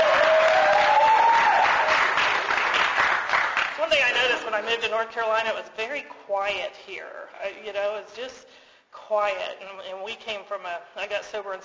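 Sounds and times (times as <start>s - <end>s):
group clapping: 0.0s - 4.4s
speech: 4.5s - 11.6s.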